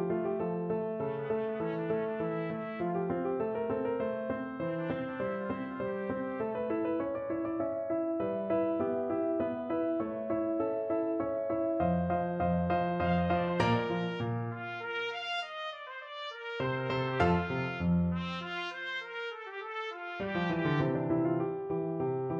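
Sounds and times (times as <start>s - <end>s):
piano: 0.0s - 22.3s
trumpet: 1.0s - 7.1s, 12.8s - 21.5s.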